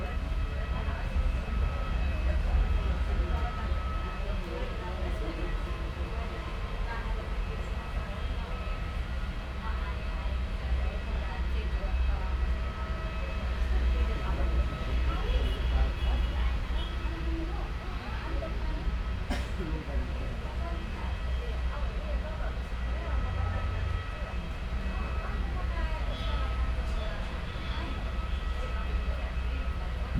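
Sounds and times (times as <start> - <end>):
bus interior ambience at an airport: 0.0 - 30.1.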